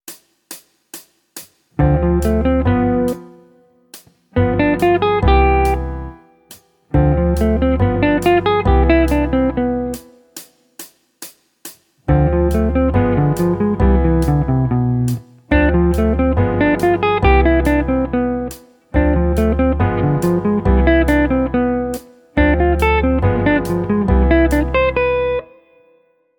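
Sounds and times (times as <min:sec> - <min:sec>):
jazz guitar: 0:01.8 - 0:03.6, 0:04.4 - 0:06.2, 0:06.9 - 0:10.2, 0:12.1 - 0:25.6.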